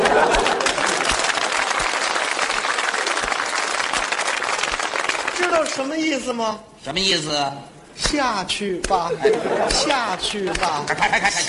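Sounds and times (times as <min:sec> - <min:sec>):
laughter: 0:00.0 - 0:01.4, 0:09.0 - 0:11.4
audience applause: 0:00.0 - 0:05.8
speech: 0:05.8 - 0:11.4.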